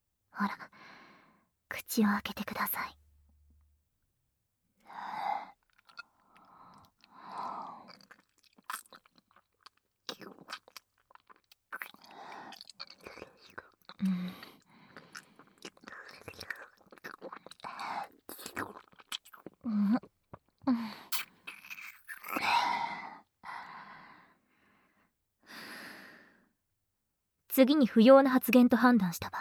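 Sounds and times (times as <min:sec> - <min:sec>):
speech: 0:00.4 - 0:00.8, 0:01.9 - 0:03.0, 0:27.6 - 0:29.3
soft gasps: 0:00.6 - 0:01.5, 0:06.2 - 0:07.9, 0:14.0 - 0:16.1, 0:20.6 - 0:21.3, 0:22.4 - 0:26.5
wet kissing sounds in an intimate saliva-exchange roleplay: 0:21.1 - 0:22.4.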